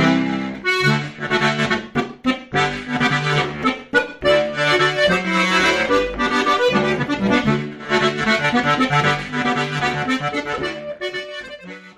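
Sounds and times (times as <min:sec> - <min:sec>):
Ländler folk music on accordion: 0:00.0 - 0:11.9.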